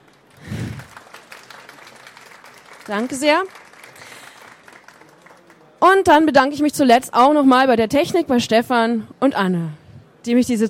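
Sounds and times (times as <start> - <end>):
audience applause after authors' readings at a radio-drama event: 0.0 - 5.8
speech: 2.9 - 3.6, 5.9 - 10.6.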